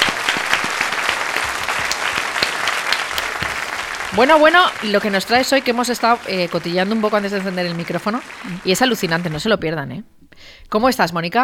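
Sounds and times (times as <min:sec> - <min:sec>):
audience applause: 0:00.0 - 0:09.6
speech: 0:04.1 - 0:11.4.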